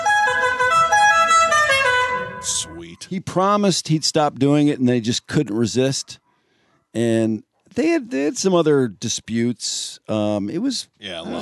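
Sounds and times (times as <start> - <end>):
lawnmower horn playing a melody: 0.0 - 2.7
speech: 3.1 - 6.2, 6.9 - 11.4.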